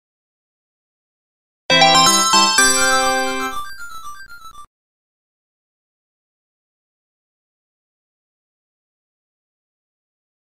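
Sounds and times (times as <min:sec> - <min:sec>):
music: 0:01.7 - 0:04.6.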